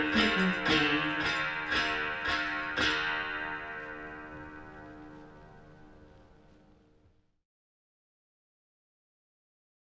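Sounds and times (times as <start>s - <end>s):
chanting: 0.0s - 5.3s.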